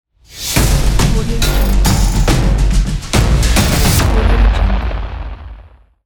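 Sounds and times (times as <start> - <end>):
cinematic trailer intro music: 0.2 - 5.8.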